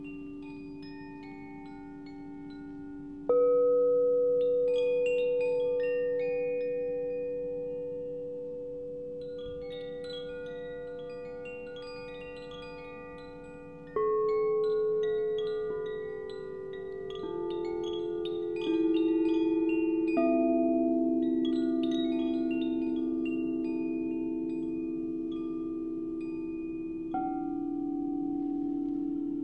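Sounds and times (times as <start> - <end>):
singing bowl ringing for meditation: 0.0 - 29.4.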